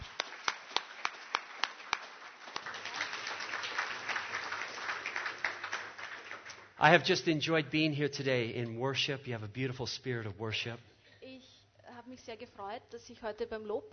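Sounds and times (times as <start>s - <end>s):
audience applause: 0.0s - 7.2s
speech: 6.8s - 10.9s, 12.3s - 13.9s.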